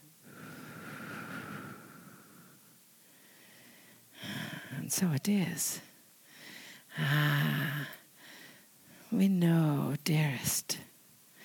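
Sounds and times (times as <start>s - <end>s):
slow deep breath drawn in: 0.2s - 4.8s, 6.2s - 7.0s, 7.8s - 9.1s
speech: 4.9s - 5.9s, 9.1s - 10.8s.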